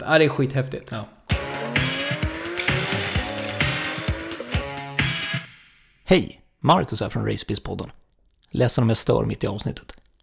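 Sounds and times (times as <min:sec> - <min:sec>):
speech: 0:00.0 - 0:01.2, 0:06.1 - 0:10.0
supercar engine at full throttle with traction control: 0:01.4 - 0:04.7.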